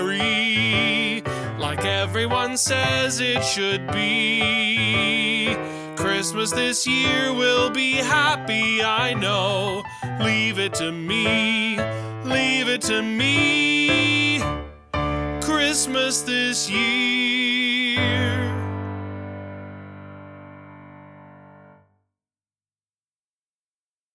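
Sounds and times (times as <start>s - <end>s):
person singing Christmas guide vocal: 0.0s - 14.7s, 15.4s - 18.7s.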